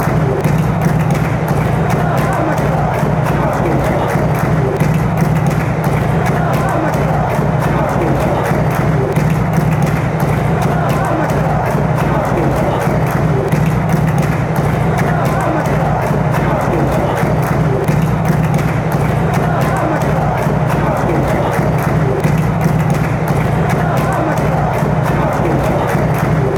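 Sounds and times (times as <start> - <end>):
hands clapping: 0.0 - 26.5.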